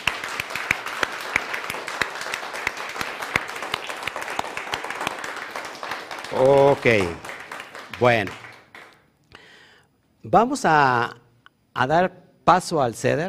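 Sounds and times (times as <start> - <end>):
audience applauding loudly: 0.0 - 9.0
speech: 6.3 - 7.3, 8.0 - 8.4, 10.3 - 11.2, 11.8 - 13.2.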